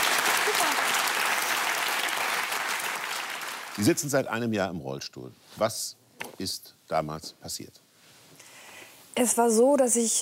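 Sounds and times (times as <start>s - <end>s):
audience applause: 0.0s - 4.1s
speech: 3.8s - 7.8s, 9.2s - 10.2s.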